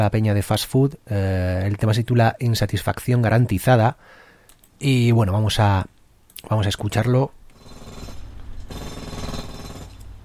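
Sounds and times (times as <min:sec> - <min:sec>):
speech: 0:00.0 - 0:04.2, 0:04.8 - 0:07.4
power drill or jackhammer drilling: 0:07.6 - 0:10.1.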